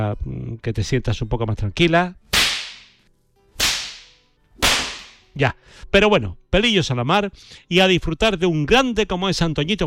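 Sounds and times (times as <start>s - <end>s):
speech: 0.0s - 2.2s, 5.4s - 9.8s
whip lashes: 2.3s - 3.0s, 3.6s - 5.2s.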